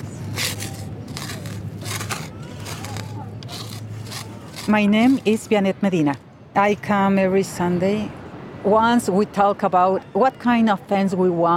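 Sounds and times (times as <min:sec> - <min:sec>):
digging out weeds in soil: 0:00.0 - 0:06.2
speech: 0:04.7 - 0:11.5.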